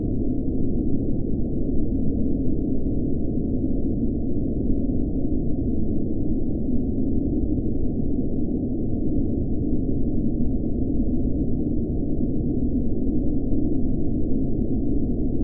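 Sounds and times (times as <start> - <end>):
cold blizzard wind constant droning: 0.0 - 15.4.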